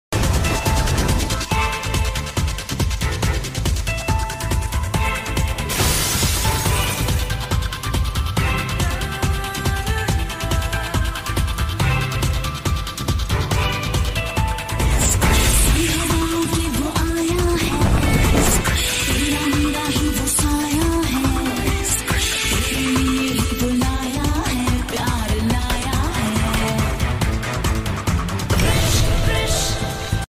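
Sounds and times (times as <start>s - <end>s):
background music ringtone: 0.1s - 30.2s.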